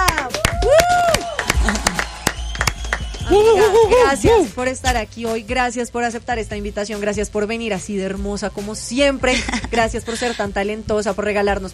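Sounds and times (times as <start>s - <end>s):
applause: 0.0s - 3.8s
speech: 3.3s - 11.7s.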